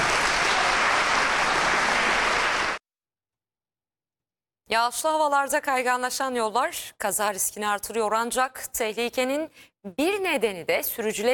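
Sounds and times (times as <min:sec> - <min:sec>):
audience applause after a student theatre show: 0:00.0 - 0:02.8
speech: 0:04.7 - 0:11.3.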